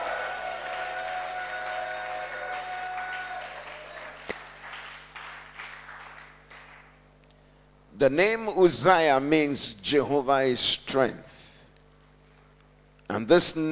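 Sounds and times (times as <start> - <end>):
audience clapping and cheering: 0.0 - 7.1
speech: 8.0 - 11.4, 13.2 - 13.6.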